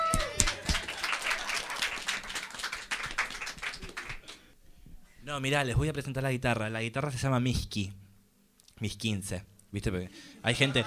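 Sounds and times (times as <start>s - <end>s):
audience applause: 0.1s - 4.4s
speech: 5.3s - 8.0s, 8.8s - 10.8s.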